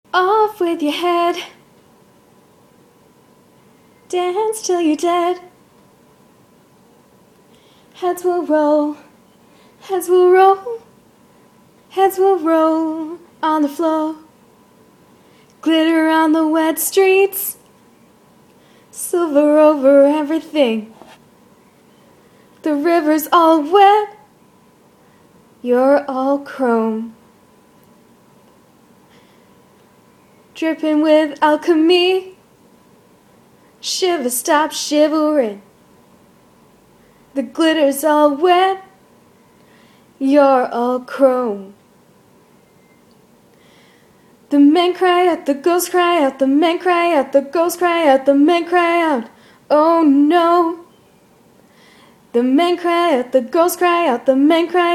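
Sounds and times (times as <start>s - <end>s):
woman singing: 0.1s - 1.6s, 4.1s - 5.5s, 8.0s - 9.1s, 9.8s - 10.9s, 11.9s - 14.3s, 15.6s - 17.6s, 19.0s - 21.0s, 22.6s - 24.2s, 25.6s - 27.2s, 30.6s - 32.4s, 33.8s - 35.6s, 37.4s - 39.0s, 40.2s - 41.8s, 44.5s - 50.9s, 52.3s - 54.9s.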